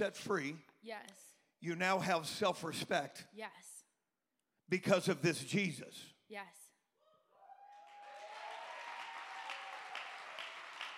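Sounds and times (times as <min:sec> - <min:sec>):
speech: 0:00.0 - 0:03.8, 0:04.7 - 0:06.6
audience clapping hands: 0:07.7 - 0:10.9.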